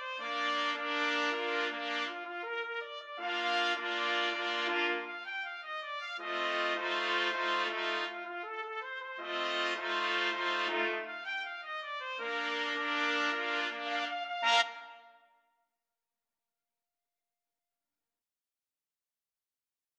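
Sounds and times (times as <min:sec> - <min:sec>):
trumpet quartet playing a folk tune: 0:00.2 - 0:05.1, 0:06.2 - 0:15.0.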